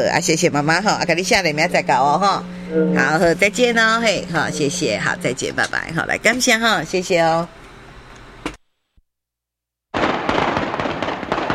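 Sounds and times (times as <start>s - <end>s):
speech: 0.0s - 7.6s
firecrackers exploding: 9.9s - 11.5s.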